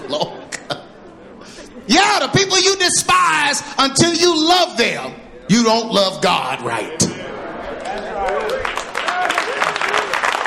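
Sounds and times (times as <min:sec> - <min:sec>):
laughter: 0:00.0 - 0:03.8, 0:06.6 - 0:10.2
speech: 0:00.1 - 0:00.4, 0:02.5 - 0:07.1
audience clapping: 0:07.8 - 0:10.4.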